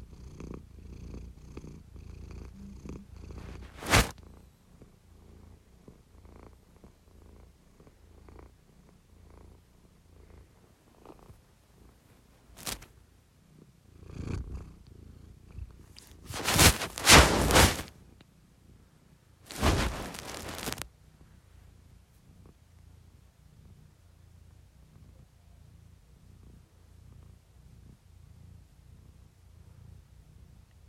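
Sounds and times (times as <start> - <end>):
cat Doeball purring: 0.0 - 30.8
crisp rustling: 3.5 - 4.1, 12.5 - 12.9, 16.0 - 17.9, 19.5 - 20.9.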